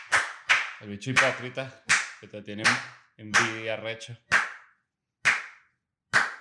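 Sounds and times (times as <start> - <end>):
one person clapping hands: 0.0 - 3.7, 4.3 - 4.6, 5.3 - 5.6, 6.2 - 6.3
speech: 0.8 - 4.4.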